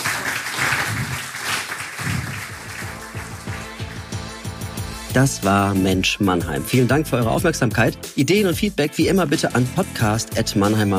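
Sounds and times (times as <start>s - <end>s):
audience applause: 0.0s - 4.2s
speech: 5.2s - 10.9s.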